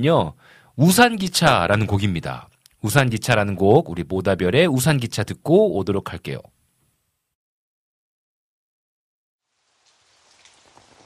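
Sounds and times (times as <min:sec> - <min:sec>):
speech: 0:00.0 - 0:06.6
rain falling: 0:09.4 - 0:11.0.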